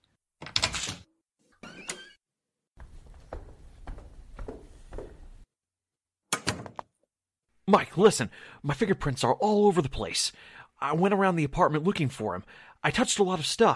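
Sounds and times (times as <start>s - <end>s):
apartment door being opened: 0.4s - 2.2s, 6.3s - 6.9s
speech: 7.7s - 13.7s.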